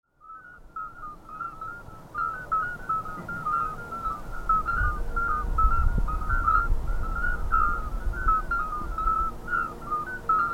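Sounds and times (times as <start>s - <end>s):
common midwife toad chorus of bell-like piping notes: 0.2s - 10.5s.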